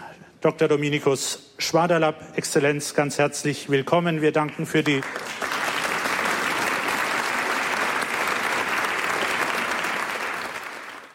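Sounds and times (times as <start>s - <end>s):
speech: 0.4s - 5.6s
audience applause at a congress talk in Aschaffenburg: 4.8s - 11.1s.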